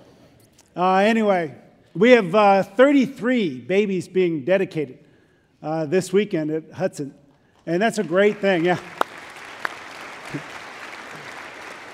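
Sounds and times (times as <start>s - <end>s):
speech: 0.8s - 5.0s, 5.6s - 9.0s, 10.3s - 10.5s
audience clapping: 7.7s - 11.9s.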